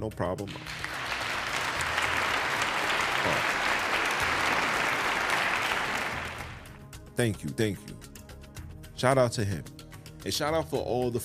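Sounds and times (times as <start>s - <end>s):
speech: 0.0s - 1.0s, 3.2s - 3.5s, 7.2s - 8.1s, 9.0s - 11.2s
audience applause: 0.5s - 6.8s.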